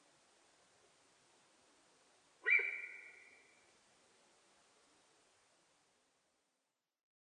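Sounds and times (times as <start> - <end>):
sika deer whistle: 2.4 - 3.4.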